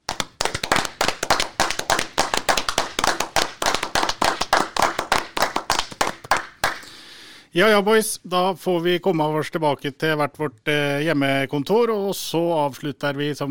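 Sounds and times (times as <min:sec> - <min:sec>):
small group hand clapping: 0:00.0 - 0:06.9
speech: 0:07.6 - 0:13.5.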